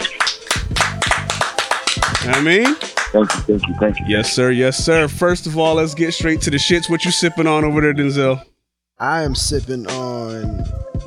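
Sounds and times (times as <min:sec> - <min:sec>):
a few people clapping: 0:00.0 - 0:04.5
speech: 0:02.3 - 0:11.0.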